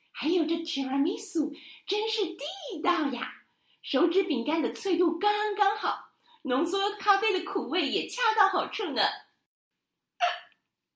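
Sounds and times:
speech: 0.2s - 9.2s
hiccup: 10.2s - 10.9s.

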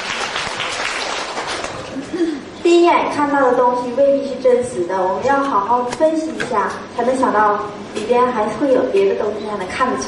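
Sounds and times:
audience applause: 0.0s - 2.1s
speech: 2.7s - 10.0s.

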